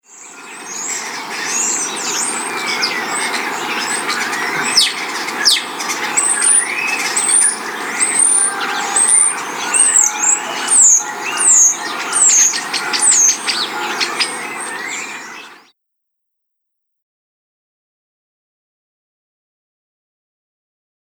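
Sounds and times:
birds singing in spring in a coastal town: 0.0 - 15.7.

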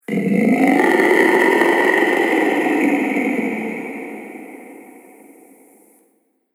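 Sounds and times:
dinosaur in a cave: 0.1 - 5.5.

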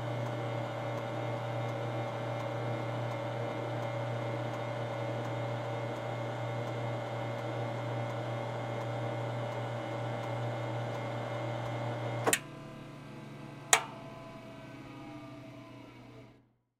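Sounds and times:
police light bar motor hum: 0.0 - 16.4
police light bar lights spinning click: 13.7 - 14.3.

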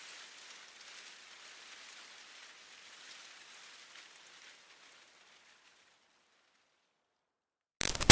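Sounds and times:
medium leaves moved by wind rustling: 0.0 - 6.6, 7.8 - 8.0
medium leaves snapping: 7.8 - 8.0.

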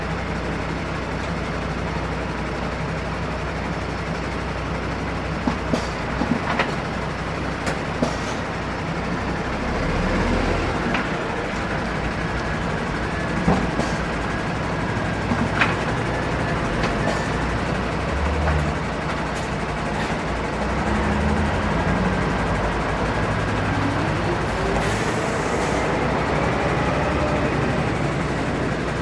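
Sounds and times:
street traffic noise: 0.0 - 29.0
trucks stopping and starting in a queue: 0.0 - 29.0.

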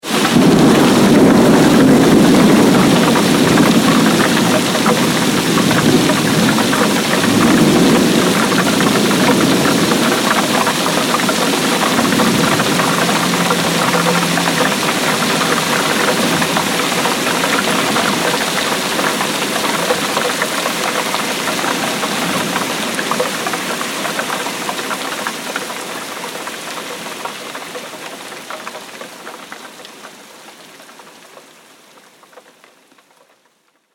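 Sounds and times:
heavy rain storm: 0.0 - 33.9
thunder: 0.1 - 24.8.

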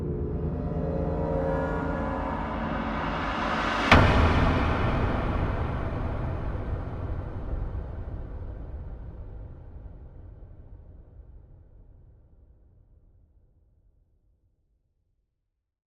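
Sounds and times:
haunting metallic swells: 0.0 - 6.2
horror music composition: 0.0 - 8.0
haunting hits: 0.0 - 9.2.

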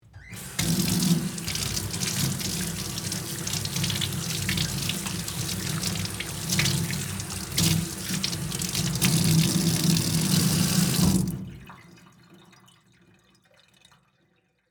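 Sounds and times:
utility sink faucet running into metal basin: 0.2 - 12.0
hands washing at a utility sink: 0.3 - 11.7.

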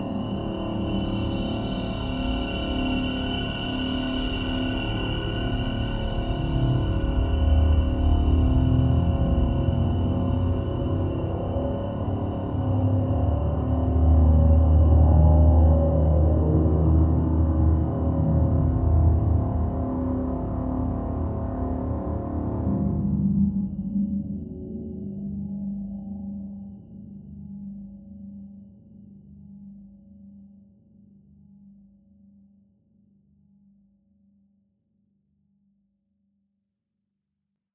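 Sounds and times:
eerie low tonal swell bed: 0.0 - 26.6.

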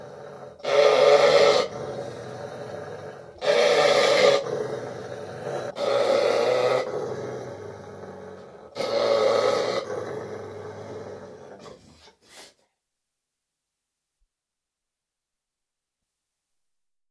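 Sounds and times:
dog snarling in harsh loud bursts: 0.0 - 12.1.

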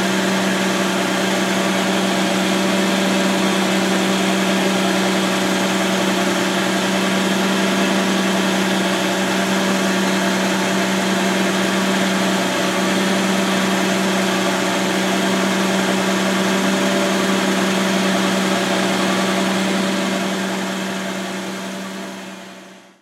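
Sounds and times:
aircraft fuel truck idling: 0.0 - 23.0.

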